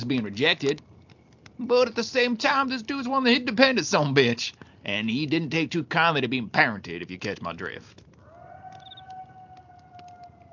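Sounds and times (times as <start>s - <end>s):
speech: 0.0s - 0.9s, 1.6s - 8.0s
coyotes howling faintly: 8.2s - 10.5s.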